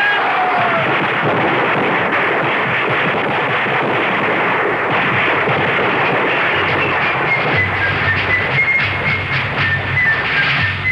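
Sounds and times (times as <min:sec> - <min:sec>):
hail of bullets: 0:00.0 - 0:10.8.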